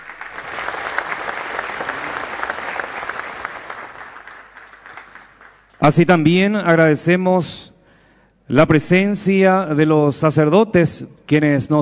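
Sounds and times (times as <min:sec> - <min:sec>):
audience applause: 0:00.0 - 0:05.8
speech: 0:05.8 - 0:07.7, 0:08.5 - 0:11.7.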